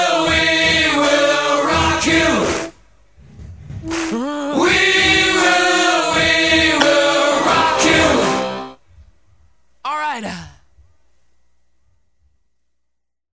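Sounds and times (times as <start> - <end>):
Zulu a cappella vocals: 0.0 - 2.8, 3.8 - 8.8.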